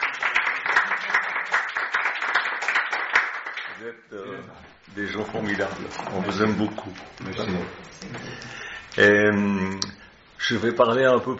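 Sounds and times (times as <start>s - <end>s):
applause welcoming a visiting family from the United States: 0.0s - 3.8s
speech: 3.8s - 11.3s.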